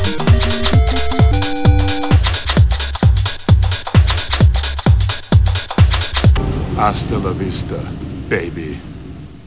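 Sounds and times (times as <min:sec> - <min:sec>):
techno music: 0:00.0 - 0:06.4.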